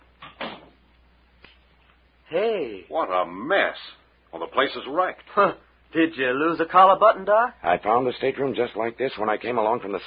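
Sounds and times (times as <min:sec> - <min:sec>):
door shutting with a scrape and thud: 0:00.2 - 0:00.8
speech: 0:02.3 - 0:10.0.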